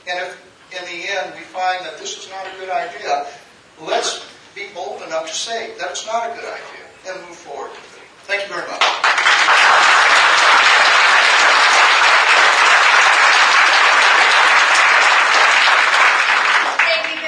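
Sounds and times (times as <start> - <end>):
speech: 0.1 - 9.8
audience applause: 8.8 - 17.2.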